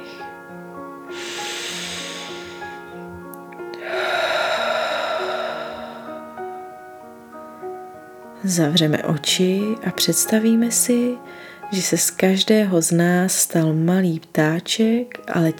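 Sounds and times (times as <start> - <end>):
deep inhale and slow exhale: 1.1 - 3.1, 3.7 - 6.6
speech: 8.4 - 15.5.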